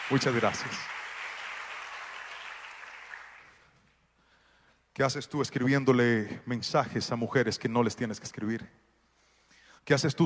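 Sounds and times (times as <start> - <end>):
audience applause: 0.0 - 3.6
speech: 0.1 - 1.0, 5.0 - 8.9, 9.8 - 10.2.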